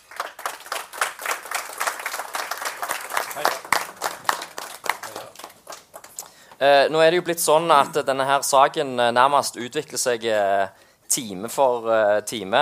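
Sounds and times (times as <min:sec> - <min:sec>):
audience applause welcoming the mayor of Sandnes as panel guest: 0:00.0 - 0:06.4
speech: 0:03.4 - 0:03.8, 0:06.6 - 0:12.6.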